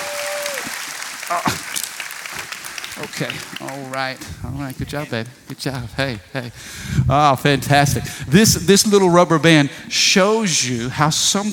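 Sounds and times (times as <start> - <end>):
audience applause: 0.0 - 5.2
speech: 1.3 - 1.8, 3.0 - 11.5.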